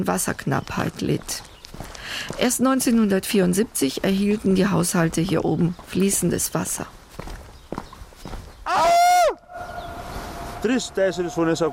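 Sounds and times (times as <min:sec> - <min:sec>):
speech: 0:00.0 - 0:07.0, 0:10.6 - 0:11.7
voice echoing in mountains: 0:08.7 - 0:11.7.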